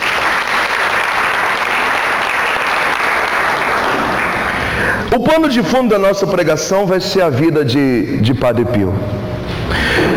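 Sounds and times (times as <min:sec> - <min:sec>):
audience applause: 0:00.0 - 0:05.0
speech: 0:05.1 - 0:10.1.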